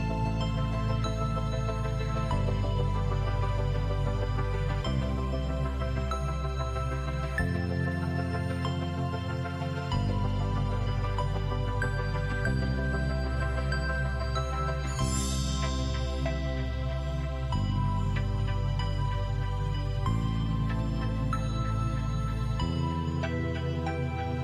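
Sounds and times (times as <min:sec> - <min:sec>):
sleigh bells: 0:00.1 - 0:24.4.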